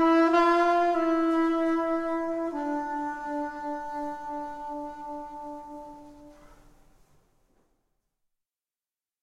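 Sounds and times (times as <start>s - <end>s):
soprano saxophone improvisation: 0.0s - 6.6s.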